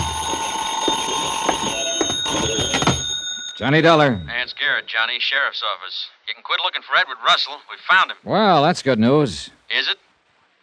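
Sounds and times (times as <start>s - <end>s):
telephone ringing: 0.0s - 4.8s
speech: 3.6s - 10.0s.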